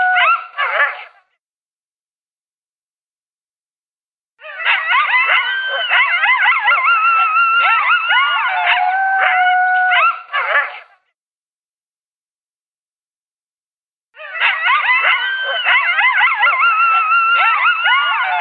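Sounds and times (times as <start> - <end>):
coyote howling and yipping: 0.0 - 1.1, 4.4 - 10.8, 14.2 - 18.3.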